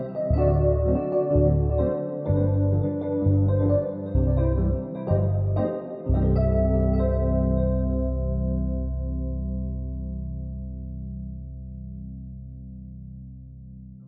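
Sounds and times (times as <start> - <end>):
vintage tine electric piano chord: 0.0 - 11.6
bass: 0.0 - 14.0.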